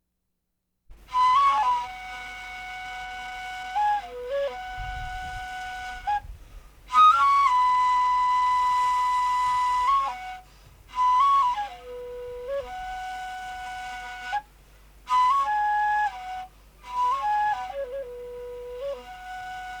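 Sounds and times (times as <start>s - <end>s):
flute solo: 1.0s - 19.7s.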